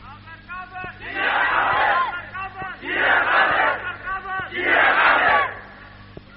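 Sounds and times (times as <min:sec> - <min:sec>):
crowd chanting a slogan: 0:01.0 - 0:05.8.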